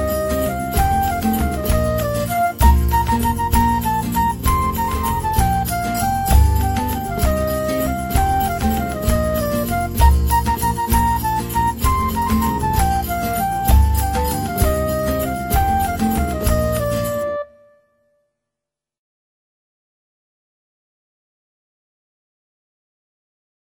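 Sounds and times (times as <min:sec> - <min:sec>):
instrumental music: 0:00.0 - 0:18.1.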